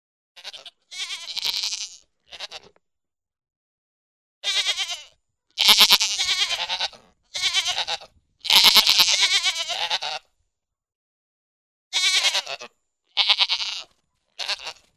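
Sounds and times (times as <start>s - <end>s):
goat giving wavering nasal bleats: 0.4s - 2.8s, 4.4s - 10.3s, 11.9s - 14.9s.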